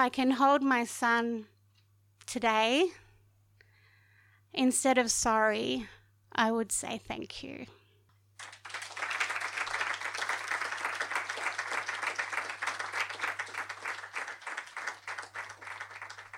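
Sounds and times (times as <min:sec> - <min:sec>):
speech: 0:00.0 - 0:01.5, 0:02.3 - 0:03.0, 0:04.5 - 0:07.8
crowd applause: 0:08.4 - 0:16.3.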